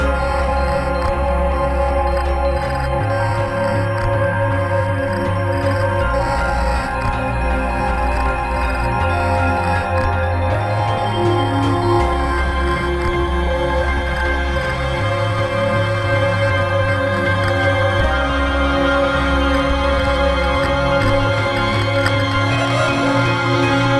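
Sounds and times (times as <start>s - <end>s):
murky slow water: 0.0s - 23.9s.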